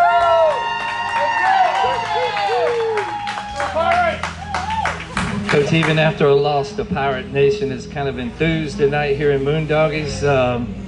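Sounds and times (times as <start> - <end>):
crowd cheering and whooping: 0.0 - 6.2
speech: 5.6 - 10.8.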